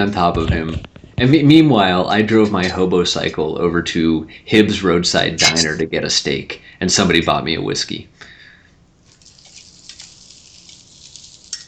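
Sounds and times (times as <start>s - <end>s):
speech: 0.0s - 8.2s
sizzling hiss or crinkling ice: 9.1s - 11.6s.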